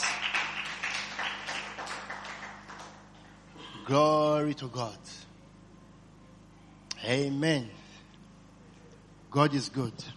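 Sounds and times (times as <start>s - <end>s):
audience hand clapping: 0.0s - 3.4s
speech: 3.9s - 5.2s, 7.0s - 7.8s, 9.3s - 10.1s.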